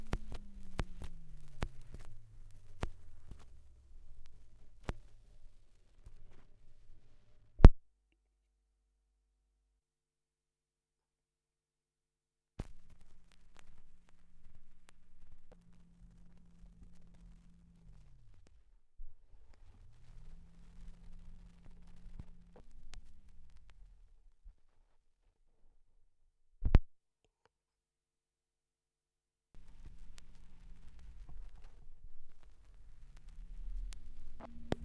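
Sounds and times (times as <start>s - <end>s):
78rpm record surface noise: 0.0s - 7.8s, 12.6s - 24.2s, 29.6s - 34.8s.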